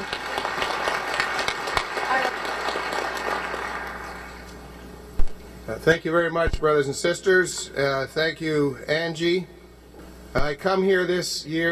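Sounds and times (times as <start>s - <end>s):
audience applause welcoming the mayor of Vancouver: 0.0s - 4.4s
speech: 5.8s - 9.6s, 10.3s - 11.7s.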